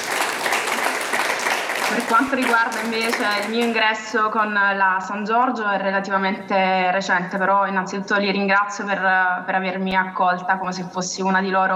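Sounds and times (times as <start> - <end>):
audience applause at an Italian gathering: 0.0 - 3.9
speech: 1.9 - 11.7.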